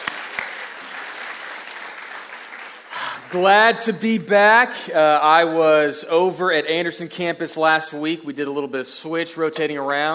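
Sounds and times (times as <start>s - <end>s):
church congregation applause during a worship service: 0.0s - 3.8s
speech: 3.3s - 10.1s.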